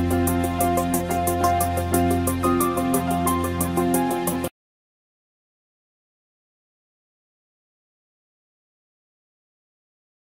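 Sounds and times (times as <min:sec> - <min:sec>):
sad love background music ringtone: 0:00.0 - 0:04.5.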